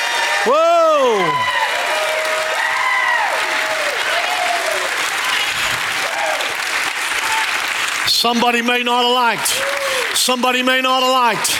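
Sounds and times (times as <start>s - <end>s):
audience hand clapping: 0.0s - 11.5s
speech: 0.4s - 1.5s, 8.2s - 11.5s.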